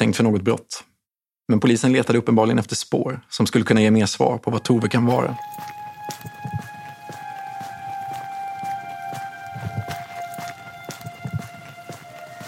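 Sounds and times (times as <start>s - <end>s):
speech: 0.0s - 0.9s, 1.5s - 6.3s
footsteps walking up to a cottage: 4.9s - 12.4s.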